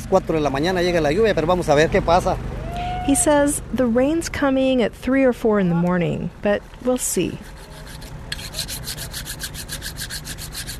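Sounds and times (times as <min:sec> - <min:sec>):
low steady hum: 0:00.0 - 0:10.7
speech: 0:00.1 - 0:02.5, 0:03.1 - 0:07.5
sharpening a small curved knife: 0:07.4 - 0:10.7.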